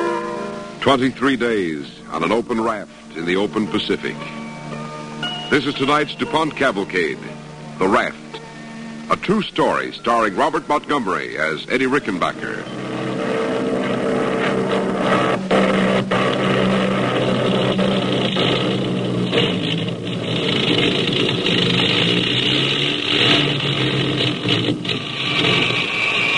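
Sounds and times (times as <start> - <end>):
speech: 0.8 - 4.4, 5.5 - 8.2, 9.1 - 12.8
airplane engine droning in flight: 2.9 - 26.3.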